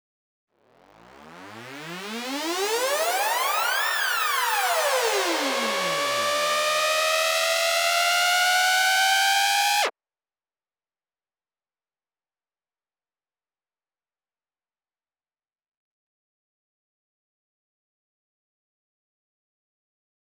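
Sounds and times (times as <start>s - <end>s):
140 BPM breakbeat uplifter: 0.8s - 9.9s.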